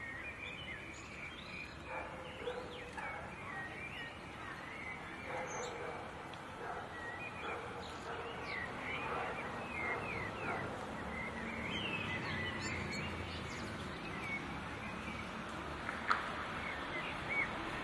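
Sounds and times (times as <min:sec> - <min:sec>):
birds singing at dusk on the canal in Neukoelln: 0:00.0 - 0:17.8
faint voices: 0:01.9 - 0:10.9.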